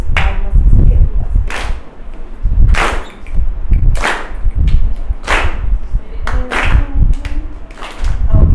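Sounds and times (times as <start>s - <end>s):
rhythmic hand claps of a clapping game: 0.1s - 0.4s, 1.5s - 1.9s, 2.7s - 8.3s.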